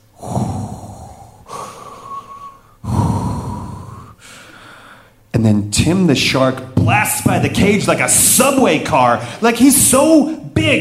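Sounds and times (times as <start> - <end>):
deep heavy breathing underwater: 0.2 - 5.2
speech: 5.4 - 10.8.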